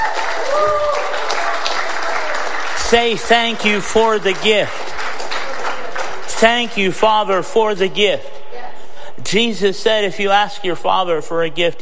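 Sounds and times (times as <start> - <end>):
audience clapping hands: 0.0 - 7.2
speech: 2.9 - 4.9, 6.4 - 8.4, 9.2 - 11.8.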